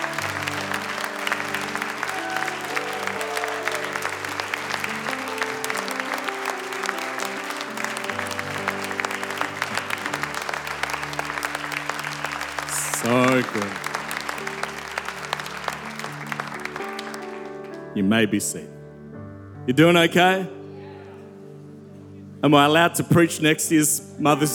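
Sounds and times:
audience clapping: 0.0s - 17.9s
speech: 18.0s - 18.8s, 19.7s - 20.6s, 22.4s - 24.5s.

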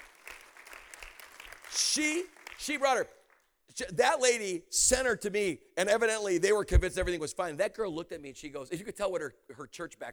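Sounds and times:
audience hand clapping: 0.0s - 3.6s
speech: 1.8s - 10.1s.

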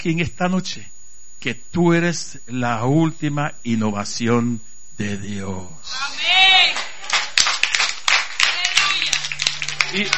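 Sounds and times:
speech: 0.0s - 6.8s, 9.9s - 10.1s
lukewarm audience applause: 6.7s - 10.1s.

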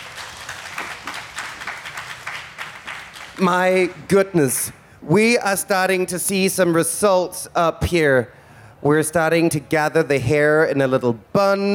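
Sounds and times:
applause: 0.0s - 4.1s
speech: 3.4s - 11.7s.

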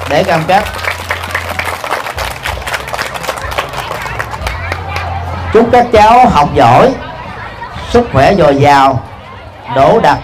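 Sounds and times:
big round of applause: 0.0s - 5.3s
speech: 0.1s - 0.9s, 5.5s - 7.0s, 7.9s - 9.1s, 9.7s - 10.2s.

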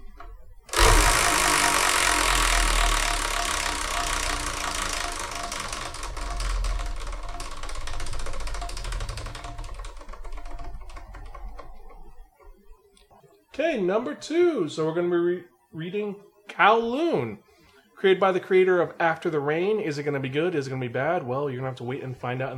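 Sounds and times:
prize wheel spinning: 0.7s - 12.0s
speech: 13.6s - 22.5s.

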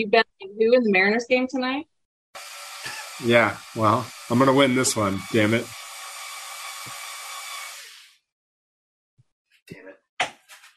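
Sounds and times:
speech: 0.0s - 2.5s, 3.2s - 5.8s
power drill running: 2.4s - 8.2s.

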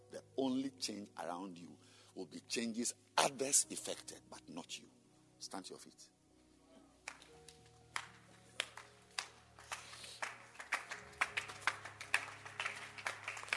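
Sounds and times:
speech: 0.4s - 6.2s
audience clapping: 7.0s - 13.5s.

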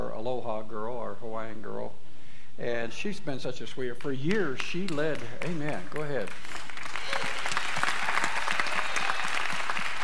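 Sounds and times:
speech: 0.2s - 6.7s
audience applause: 5.1s - 10.0s.

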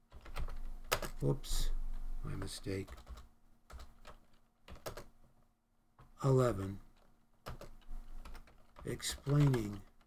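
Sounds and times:
typing on a computer keyboard: 0.1s - 1.2s, 2.8s - 5.1s, 6.9s - 10.0s
speech: 1.2s - 3.1s, 6.2s - 6.8s, 8.8s - 9.9s.

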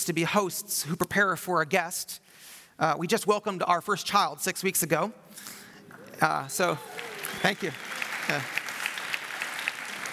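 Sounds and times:
speech: 0.0s - 8.6s
crowd applause: 6.6s - 10.1s.

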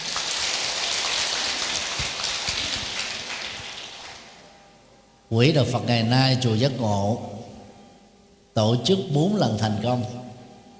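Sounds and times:
big round of applause: 0.0s - 4.4s
speech: 5.3s - 7.4s, 8.6s - 10.2s.

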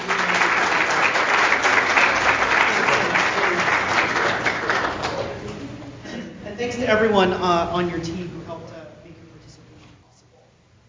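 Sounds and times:
audience applause: 0.0s - 5.5s
speech: 6.9s - 8.2s.

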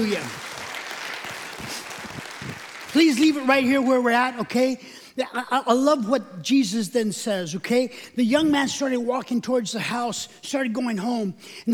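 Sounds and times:
speech: 0.0s - 0.5s, 3.0s - 11.7s
audience clapping: 0.0s - 4.3s.

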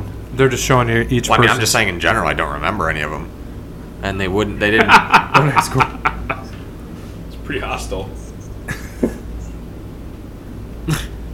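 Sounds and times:
low steady hum: 0.0s - 11.3s
speech: 0.4s - 3.4s, 4.0s - 6.2s, 7.5s - 8.8s
laughter: 4.6s - 6.6s, 8.7s - 9.5s
harsh coughs: 10.8s - 11.2s.

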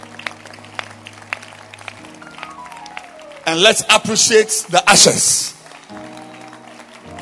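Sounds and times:
audience clapping hands: 0.0s - 7.2s
speech: 3.5s - 5.6s.

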